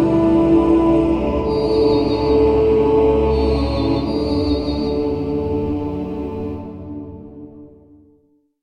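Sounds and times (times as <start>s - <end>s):
monks chanting: 0.0s - 6.6s
heavenly choir singing: 0.0s - 8.0s.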